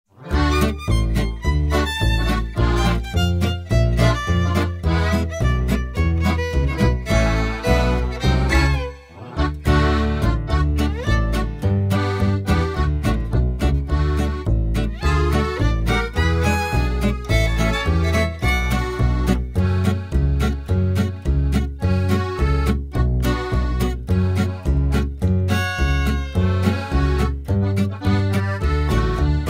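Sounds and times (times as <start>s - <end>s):
backing track: 0.1s - 29.4s.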